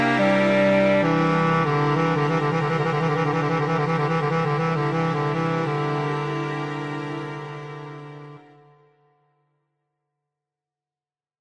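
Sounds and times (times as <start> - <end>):
clarinet: 0.0 - 9.0.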